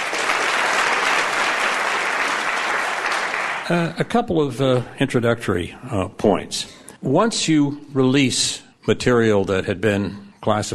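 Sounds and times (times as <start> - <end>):
audience applauding a speaker at a lectern: 0.0 - 3.8
speech: 3.7 - 10.7.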